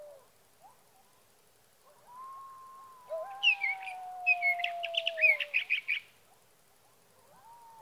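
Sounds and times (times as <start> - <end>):
sage thrasher warbling: 3.3 - 6.0.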